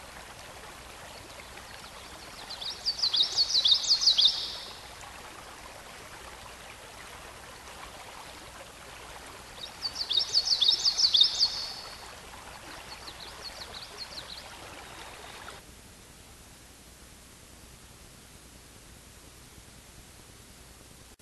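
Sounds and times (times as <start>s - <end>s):
songbird singing: 1.1s - 4.9s, 9.6s - 15.6s.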